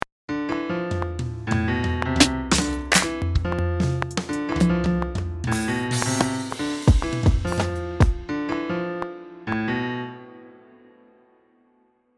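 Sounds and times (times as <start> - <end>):
piano: 0.3 - 12.1.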